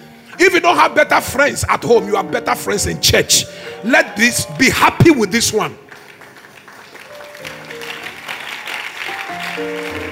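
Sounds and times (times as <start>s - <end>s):
speech: 0.3s - 5.8s
audience clapping: 5.0s - 10.1s.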